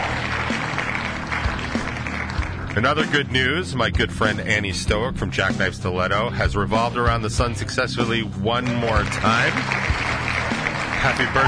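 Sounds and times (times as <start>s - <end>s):
applause sound effect from a button: 0.0s - 3.4s, 8.5s - 11.4s
speech: 2.8s - 9.9s, 11.0s - 11.4s.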